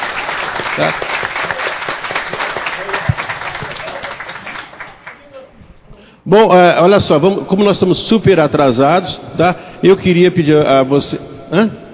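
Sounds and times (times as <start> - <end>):
audience applause: 0.0 - 5.4
speech: 0.8 - 1.2, 6.3 - 11.8.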